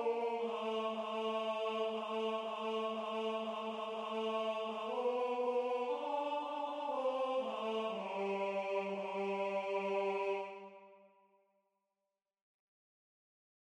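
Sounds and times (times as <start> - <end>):
tenor voice singing: 0.0 - 10.9.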